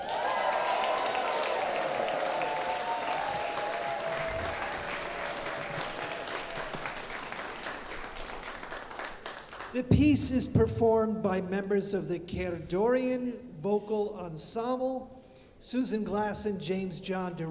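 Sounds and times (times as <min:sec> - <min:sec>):
people cheering: 0:00.0 - 0:09.3
audience applause: 0:00.0 - 0:09.8
speech: 0:09.8 - 0:17.4.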